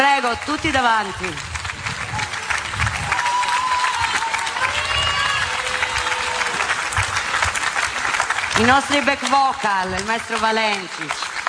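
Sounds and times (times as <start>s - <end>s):
speech: 0.2s - 1.5s, 8.6s - 11.2s
crowd applause: 0.3s - 11.4s
cheers and whoops: 2.0s - 7.3s.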